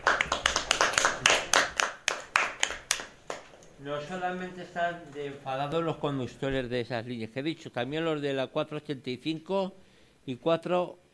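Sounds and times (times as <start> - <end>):
audience applause: 0.0 - 3.1
speech: 3.8 - 11.0.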